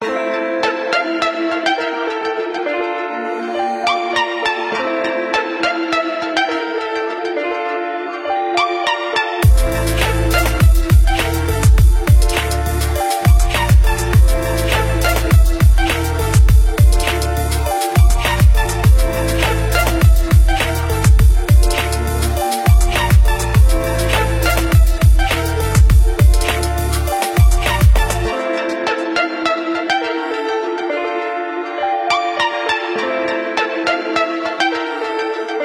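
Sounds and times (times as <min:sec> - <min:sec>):
hip hop music: 0:00.0 - 0:35.6.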